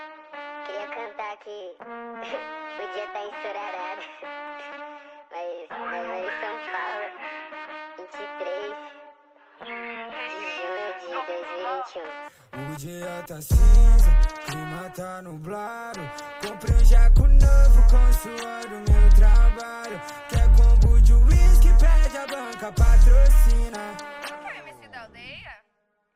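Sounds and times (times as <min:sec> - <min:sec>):
trap beat with deep bass: 0:12.6 - 0:24.5.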